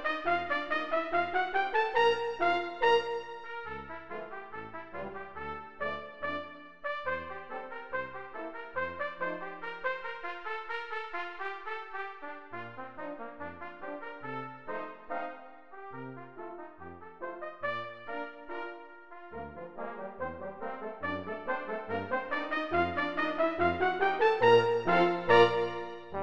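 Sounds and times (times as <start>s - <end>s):
brass pizzicato notes: 0.0s - 26.2s.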